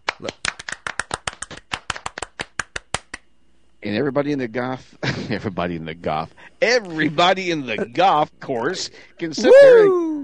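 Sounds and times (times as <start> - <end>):
soft golf clap: 0.1 - 3.2
speech: 0.2 - 0.4, 3.8 - 10.2.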